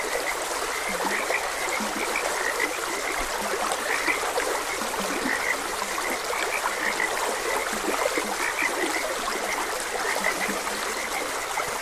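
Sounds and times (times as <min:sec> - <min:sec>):
frogs croaking: 0:00.0 - 0:11.8
trickling stream water: 0:00.0 - 0:11.8.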